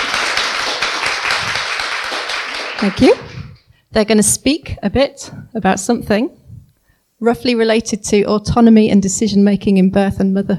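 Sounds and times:
audience applause: 0.0 - 3.4
speech: 2.8 - 3.3, 3.9 - 6.4, 7.2 - 10.5.

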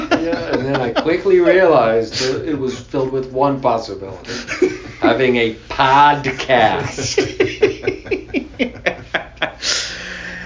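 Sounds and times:
laughter: 0.0 - 2.4, 4.3 - 5.4, 6.3 - 9.7
speech: 0.2 - 9.2
breathy gasps before a sneeze: 9.6 - 10.4.

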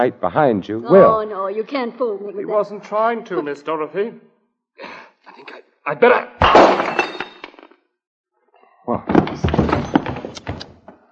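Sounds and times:
speech: 0.0 - 7.0
bottle thudding against someone: 6.4 - 7.5, 9.1 - 10.6
glassy clinking: 6.6 - 7.6.

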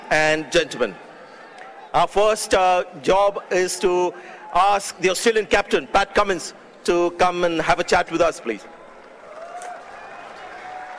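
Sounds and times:
speech: 0.1 - 1.1, 1.9 - 8.8
audience applause: 8.8 - 10.9.

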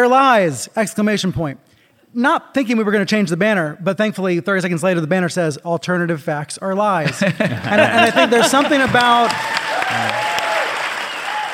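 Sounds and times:
speech: 0.0 - 10.3
laughter: 7.0 - 10.3
audience applause: 7.8 - 11.5.

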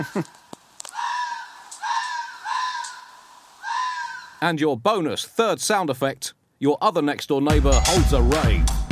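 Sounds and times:
speech: 0.0 - 0.4, 4.4 - 8.8
two foxes mating and screaming: 0.9 - 4.4.

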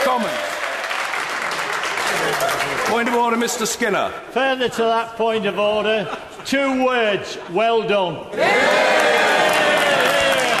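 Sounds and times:
crowd cheering: 0.0 - 3.4, 8.4 - 10.5
speech: 2.4 - 8.8.

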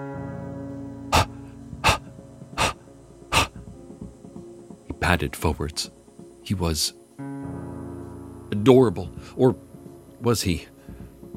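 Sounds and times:
beagle puppy's wet, rapid breathing: 1.1 - 3.7
speech: 5.0 - 7.0, 8.7 - 10.7.

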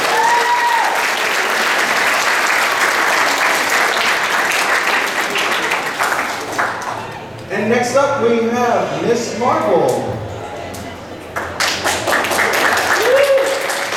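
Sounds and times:
audience applause: 0.0 - 7.3, 11.4 - 13.9
speech: 7.6 - 10.2.

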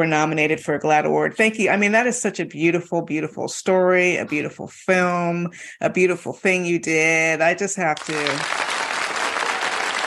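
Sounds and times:
speech: 0.0 - 8.8
audience applauding: 8.0 - 10.0.

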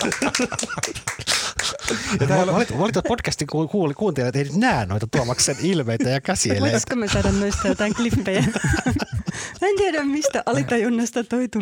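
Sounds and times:
brief small applause: 0.0 - 2.2
laughter: 0.0 - 3.3, 5.1 - 10.8
speech: 0.1 - 11.5.

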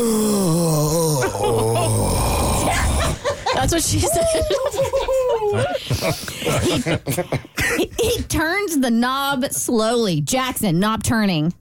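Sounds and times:
person imitating a moan: 0.0 - 3.2
laughter: 1.2 - 8.3
speech: 3.6 - 11.6.

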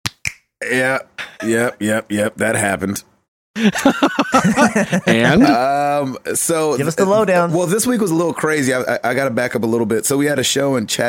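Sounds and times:
fingers snapping: 0.0 - 0.5
speech: 0.6 - 11.0
laughter: 3.6 - 5.8.

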